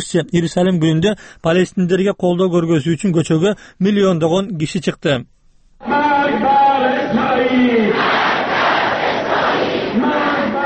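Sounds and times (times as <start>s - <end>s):
speech: 0.0s - 6.5s
demonstrators chanting slogans against Israel at a Quds Day rally in Tehran: 5.8s - 10.6s.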